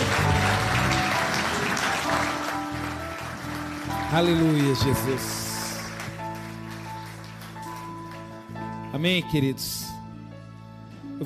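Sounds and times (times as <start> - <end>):
audience applause: 0.0 - 8.6
speech: 4.1 - 5.5, 9.0 - 9.9.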